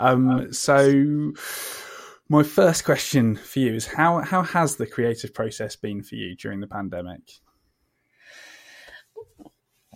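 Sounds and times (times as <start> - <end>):
speech: 0.0 - 7.4
giant intake of breath: 1.4 - 2.2.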